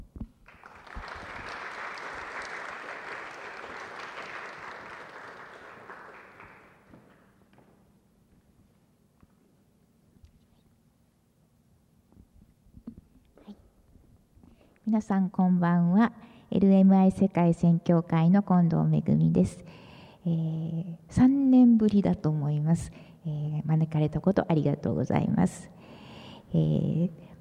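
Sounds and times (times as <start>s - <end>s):
audience applause welcoming a speaker: 0.5s - 7.3s
speech: 14.9s - 25.8s, 26.5s - 27.2s.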